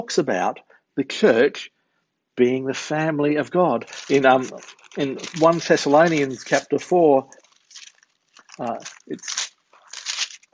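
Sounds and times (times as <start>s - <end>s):
speech: 0.0s - 1.7s, 2.4s - 7.8s, 8.6s - 9.5s
paper rustling at the back of a church congregation: 3.8s - 10.5s.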